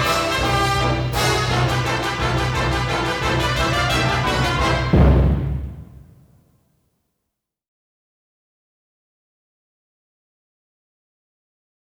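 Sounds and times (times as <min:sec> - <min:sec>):
mazurka: 0:00.0 - 0:05.5.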